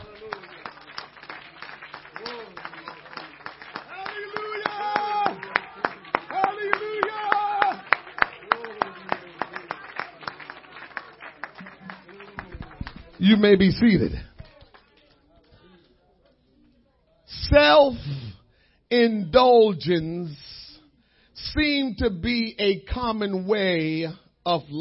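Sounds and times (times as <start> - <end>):
audience clapping hands: 0.0 - 15.9
speech: 13.2 - 14.3, 19.0 - 20.4, 21.5 - 24.8.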